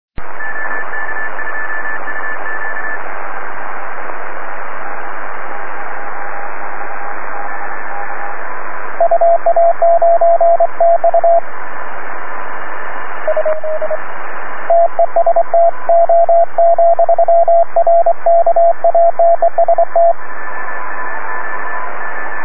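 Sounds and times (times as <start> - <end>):
morse code beeps: 9.0 - 11.4, 13.3 - 14.0, 14.7 - 20.2.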